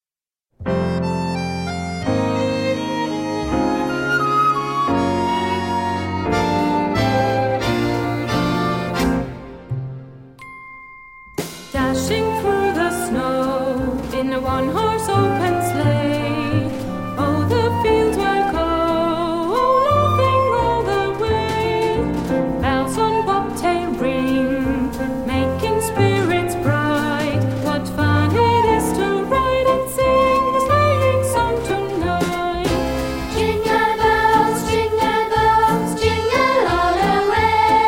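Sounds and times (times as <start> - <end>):
christmas song for children: 1.0 - 9.5, 10.4 - 37.8.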